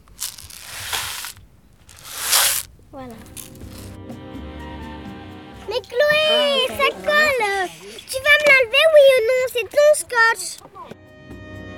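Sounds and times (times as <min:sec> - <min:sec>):
homemade rain stick being shaken: 0:00.0 - 0:04.0, 0:05.7 - 0:09.6
laughter: 0:05.6 - 0:11.0
speech: 0:09.6 - 0:11.0.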